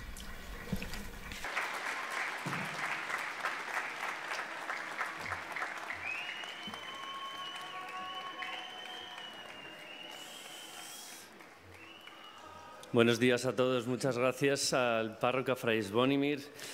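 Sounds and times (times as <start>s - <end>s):
audience applause welcoming a speaker: 1.4s - 12.8s
speech: 13.0s - 16.7s.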